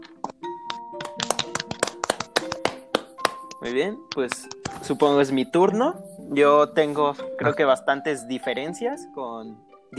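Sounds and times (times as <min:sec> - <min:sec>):
small group applauding: 0:00.7 - 0:03.5
speech: 0:03.6 - 0:09.9.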